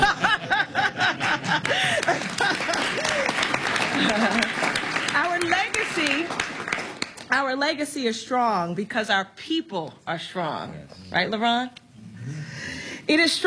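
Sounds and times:
bits of laughter: 0.0s - 4.8s
audience applause: 1.2s - 7.3s
speech: 7.5s - 12.4s, 13.1s - 13.4s.

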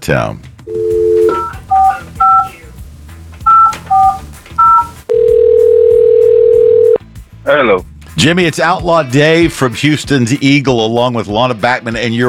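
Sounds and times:
speech: 0.1s - 0.5s, 7.5s - 12.2s
two-tone telephone keypad beeps: 0.7s - 2.6s, 3.5s - 7.0s.

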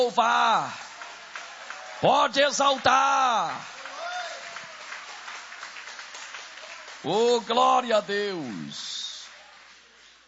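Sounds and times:
speech: 0.0s - 0.9s, 2.0s - 3.8s, 7.0s - 9.0s
audience applauding: 0.0s - 10.2s.

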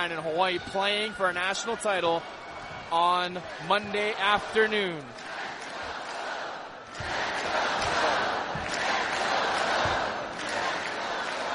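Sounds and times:
speech: 0.0s - 5.3s
Hawaii crowd chanting to serenade players: 3.3s - 11.5s.

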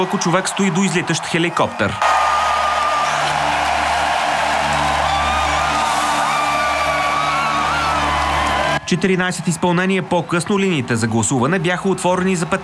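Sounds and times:
speech: 0.0s - 2.4s, 8.9s - 12.6s
audience cheering in a hall: 0.0s - 9.6s.

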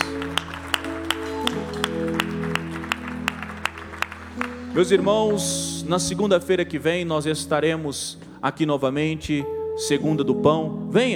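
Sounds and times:
audience clapping in unison: 0.0s - 6.2s
sustained keyboard chord: 0.0s - 11.1s
speech: 4.8s - 11.1s.

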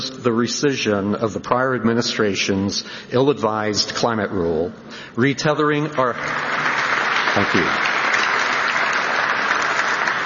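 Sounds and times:
speech: 0.2s - 6.8s, 7.4s - 7.9s
audience applause for a securities regulator: 6.0s - 10.2s.

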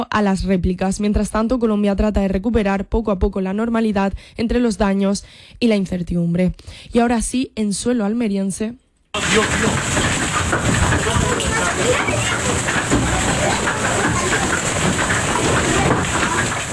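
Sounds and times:
speech: 0.0s - 10.7s
hailstorm: 9.2s - 16.7s.

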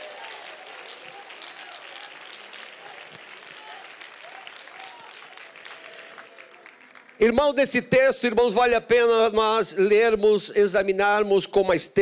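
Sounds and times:
audience applause: 0.0s - 7.5s
speech: 7.2s - 12.0s.

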